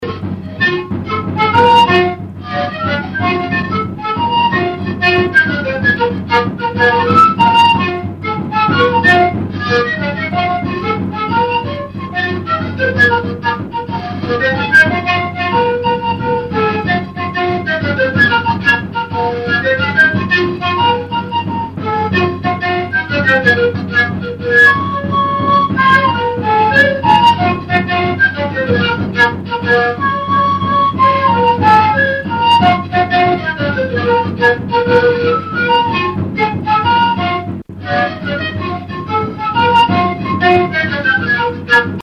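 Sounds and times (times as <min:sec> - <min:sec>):
siku panpipes: 0:00.0 - 0:42.0.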